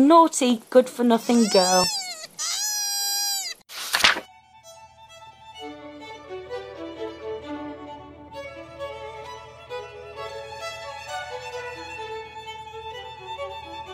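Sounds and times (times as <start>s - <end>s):
speech: 0.0s - 2.6s
koala screaming after being thrown at a tree: 1.2s - 3.6s.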